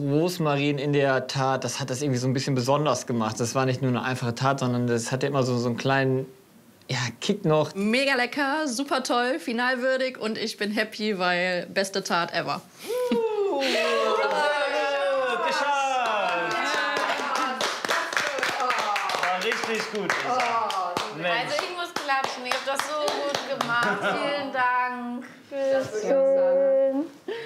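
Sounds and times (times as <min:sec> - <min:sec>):
speech: 0:00.0 - 0:13.9, 0:19.7 - 0:27.0
laughter: 0:12.9 - 0:17.6, 0:23.5 - 0:24.5
hand clapping: 0:16.0 - 0:24.0.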